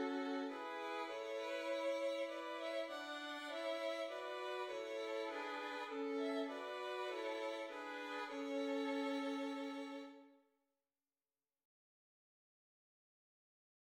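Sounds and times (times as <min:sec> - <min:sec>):
violins: 0:00.0 - 0:10.3.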